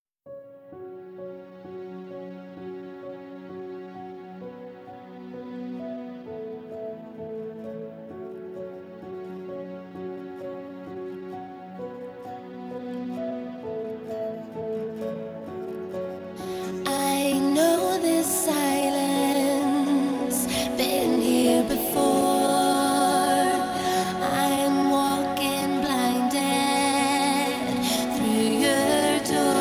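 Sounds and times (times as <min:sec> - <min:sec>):
acoustic music: 0:00.4 - 0:29.5.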